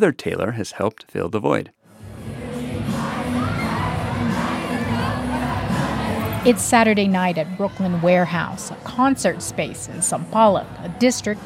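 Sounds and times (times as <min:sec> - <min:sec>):
speech: 0:00.0 - 0:01.8, 0:06.4 - 0:11.4
concert crowd cheering and screaming: 0:02.9 - 0:08.8.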